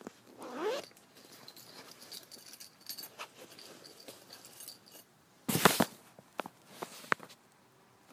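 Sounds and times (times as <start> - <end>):
suitcase and things handling: 0.3 - 4.7.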